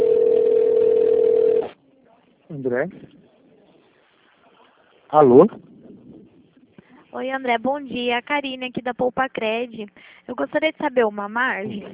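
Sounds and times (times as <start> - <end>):
telephone dial tone: 0.0 - 1.7
speech: 2.6 - 3.2, 5.1 - 5.7, 7.1 - 11.9.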